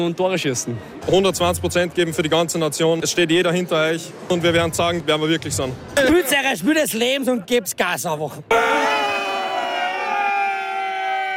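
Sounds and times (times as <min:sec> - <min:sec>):
speech: 0:00.0 - 0:08.8
fans cheering: 0:08.5 - 0:11.3.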